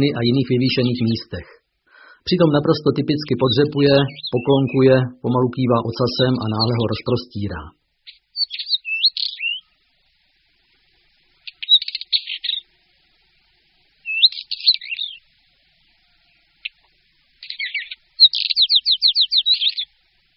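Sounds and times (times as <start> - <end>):
speech: 0.0 - 1.6, 2.2 - 7.8
northern wheatear singing: 0.0 - 9.8, 11.4 - 12.7, 14.0 - 15.3, 16.2 - 20.0.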